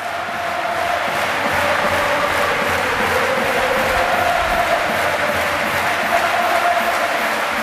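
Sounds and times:
arena crowd ovation: 0.0s - 7.6s.

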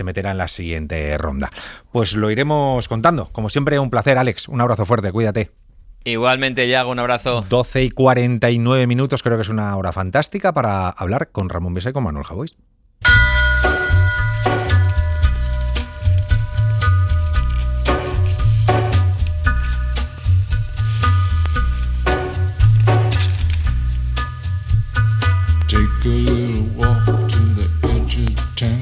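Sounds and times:
speech: 0.0s - 13.2s
radio show theme tune: 13.1s - 28.8s.

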